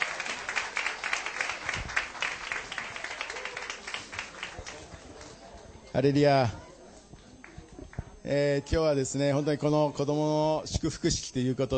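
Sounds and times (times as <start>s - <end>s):
applause: 0.0s - 5.5s
speech: 6.0s - 6.6s, 8.3s - 11.7s.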